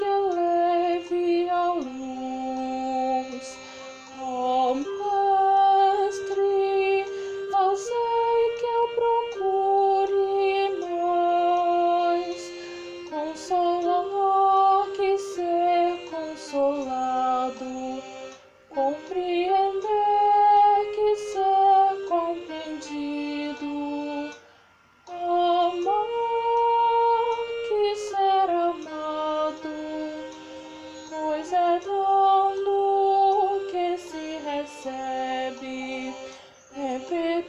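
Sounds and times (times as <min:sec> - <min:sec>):
soprano singing a prayer: 0:00.0 - 0:37.4.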